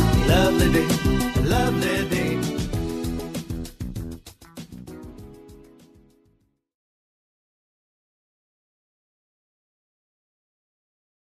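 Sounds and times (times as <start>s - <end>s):
guide vocal singing a verse: 0.0s - 3.1s.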